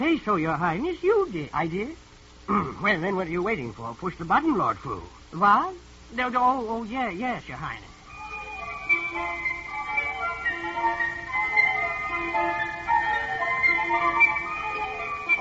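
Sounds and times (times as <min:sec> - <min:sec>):
speech: 0:00.0 - 0:07.9
mechanical nightingale singing a music-box tune: 0:08.1 - 0:15.4.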